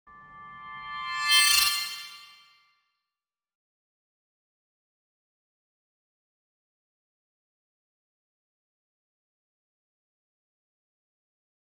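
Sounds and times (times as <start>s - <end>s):
ambient music: 0.1s - 2.4s.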